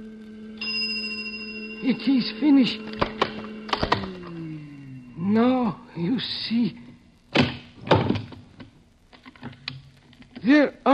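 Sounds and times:
low steady hum: 0.0s - 10.4s
bright bell ringing: 0.4s - 5.7s
speech: 1.8s - 3.0s, 5.3s - 6.8s, 10.4s - 10.9s.

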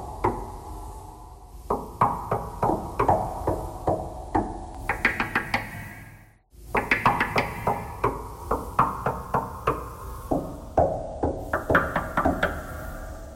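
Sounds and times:
knocking thread noise: 1.6s - 5.8s, 6.7s - 13.0s.

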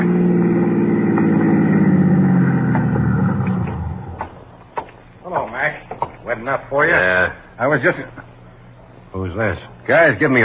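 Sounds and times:
car engine humming while pulling into a toll plaza: 0.0s - 4.7s
speech: 6.5s - 8.2s, 9.2s - 10.4s.

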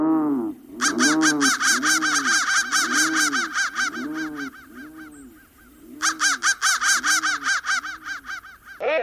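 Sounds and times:
crow cawing: 0.1s - 8.8s.

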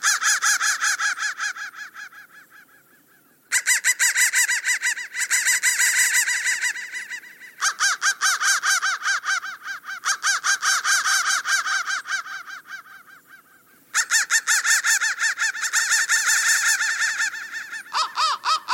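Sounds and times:
crows cawing: 0.0s - 18.7s.

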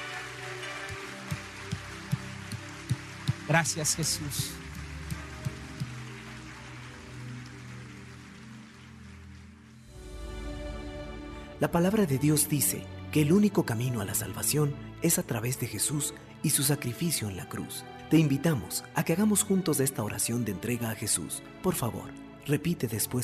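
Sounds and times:
audience applause: 0.0s - 9.8s
speech: 3.5s - 4.6s, 11.6s - 23.2s.

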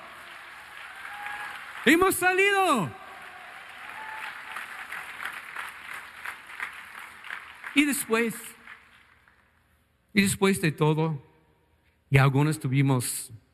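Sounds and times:
audience applauding: 0.0s - 9.6s
speech: 1.8s - 3.0s, 7.8s - 8.6s, 10.1s - 11.3s, 12.1s - 13.4s.

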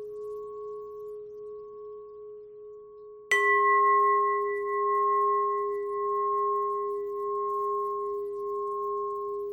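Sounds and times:
bent and twisted bell tone: 3.3s - 9.3s.

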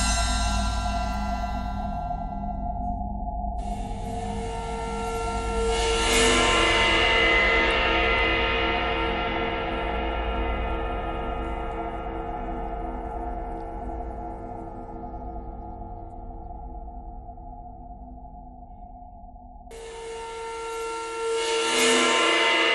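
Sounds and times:
bowed cymbal: 0.0s - 3.0s, 3.6s - 14.2s, 19.7s - 22.7s.

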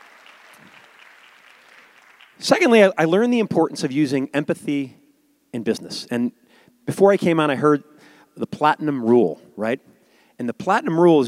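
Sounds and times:
audience applause: 0.0s - 2.5s
speech: 2.4s - 11.2s.

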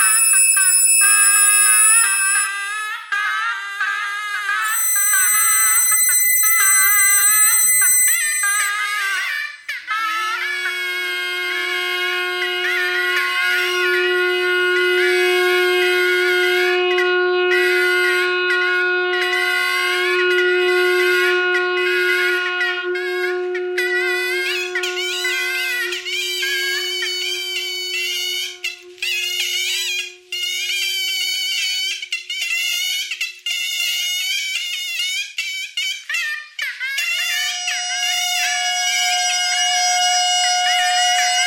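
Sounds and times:
bagpipe: 0.0s - 41.4s.

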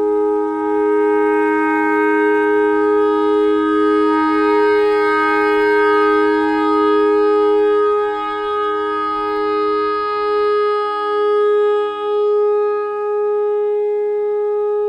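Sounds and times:
pentatonic clarinet notes: 0.0s - 14.8s.

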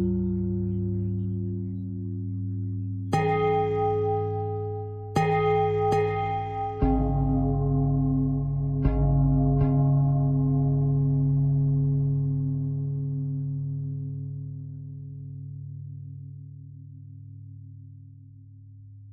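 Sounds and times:
pentatonic bell melody: 0.0s - 14.2s.

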